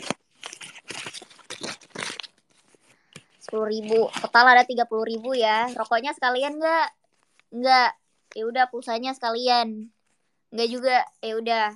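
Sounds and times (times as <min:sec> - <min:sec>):
counting paper banknotes: 0:00.0 - 0:06.5
speech: 0:03.5 - 0:11.7.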